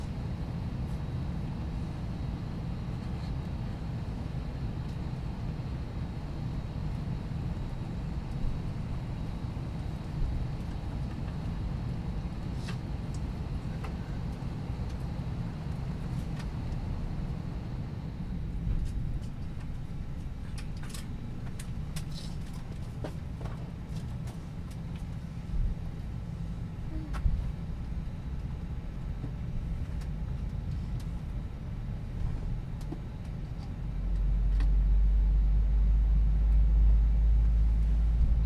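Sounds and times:
plane in flight engine roar: 0.0s - 38.4s.

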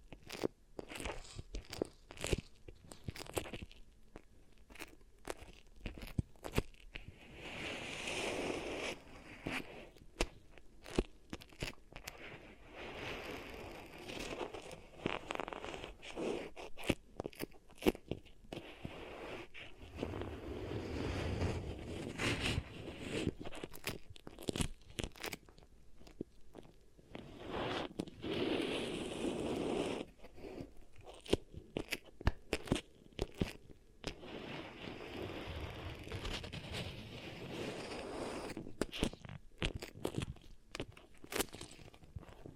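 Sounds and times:
beeswax pressed and worked: 0.0s - 42.5s.

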